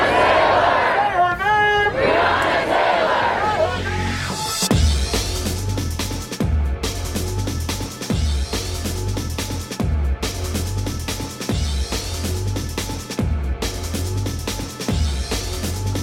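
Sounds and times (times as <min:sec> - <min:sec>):
large crowd of protesters chanting and shouting: 0:00.0 - 0:04.6
heavy rhythmic thumps: 0:04.7 - 0:16.0.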